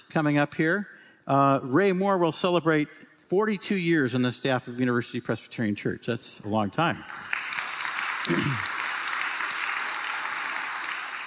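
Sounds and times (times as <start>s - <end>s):
speech: 0.1s - 7.4s, 8.2s - 8.7s
crowd applause: 7.1s - 11.2s.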